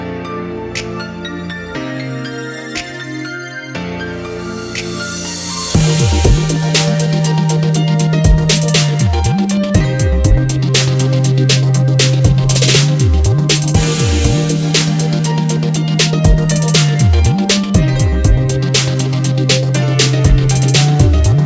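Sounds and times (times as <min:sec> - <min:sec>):
new rnb music: 0:04.7 - 0:21.4.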